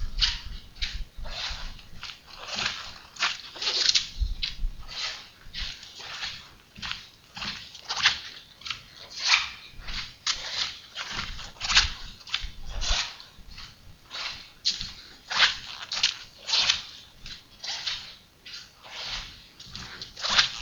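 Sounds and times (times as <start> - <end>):
footsteps of rubber soles on vinyl: 0.0 - 20.5.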